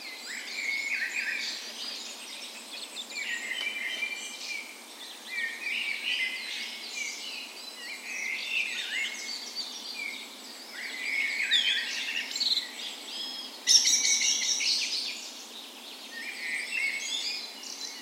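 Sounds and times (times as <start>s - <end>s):
many songbirds in a dawn chorus: 0.0s - 18.0s
steady faint background hiss: 0.0s - 18.0s.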